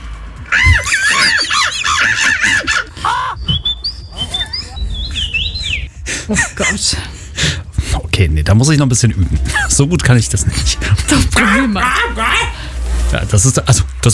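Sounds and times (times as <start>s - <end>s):
laughter: 0.5s - 7.6s, 9.0s - 12.6s
human voice imitating bird calls: 0.6s - 2.0s, 3.4s - 6.5s
speech: 6.3s - 7.1s, 8.2s - 11.8s, 13.1s - 14.1s.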